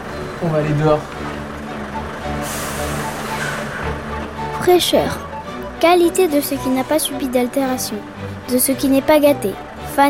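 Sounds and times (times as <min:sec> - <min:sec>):
speech: 0:00.4 - 0:01.2, 0:04.7 - 0:10.0
arriving truck with air brakes: 0:02.0 - 0:04.3.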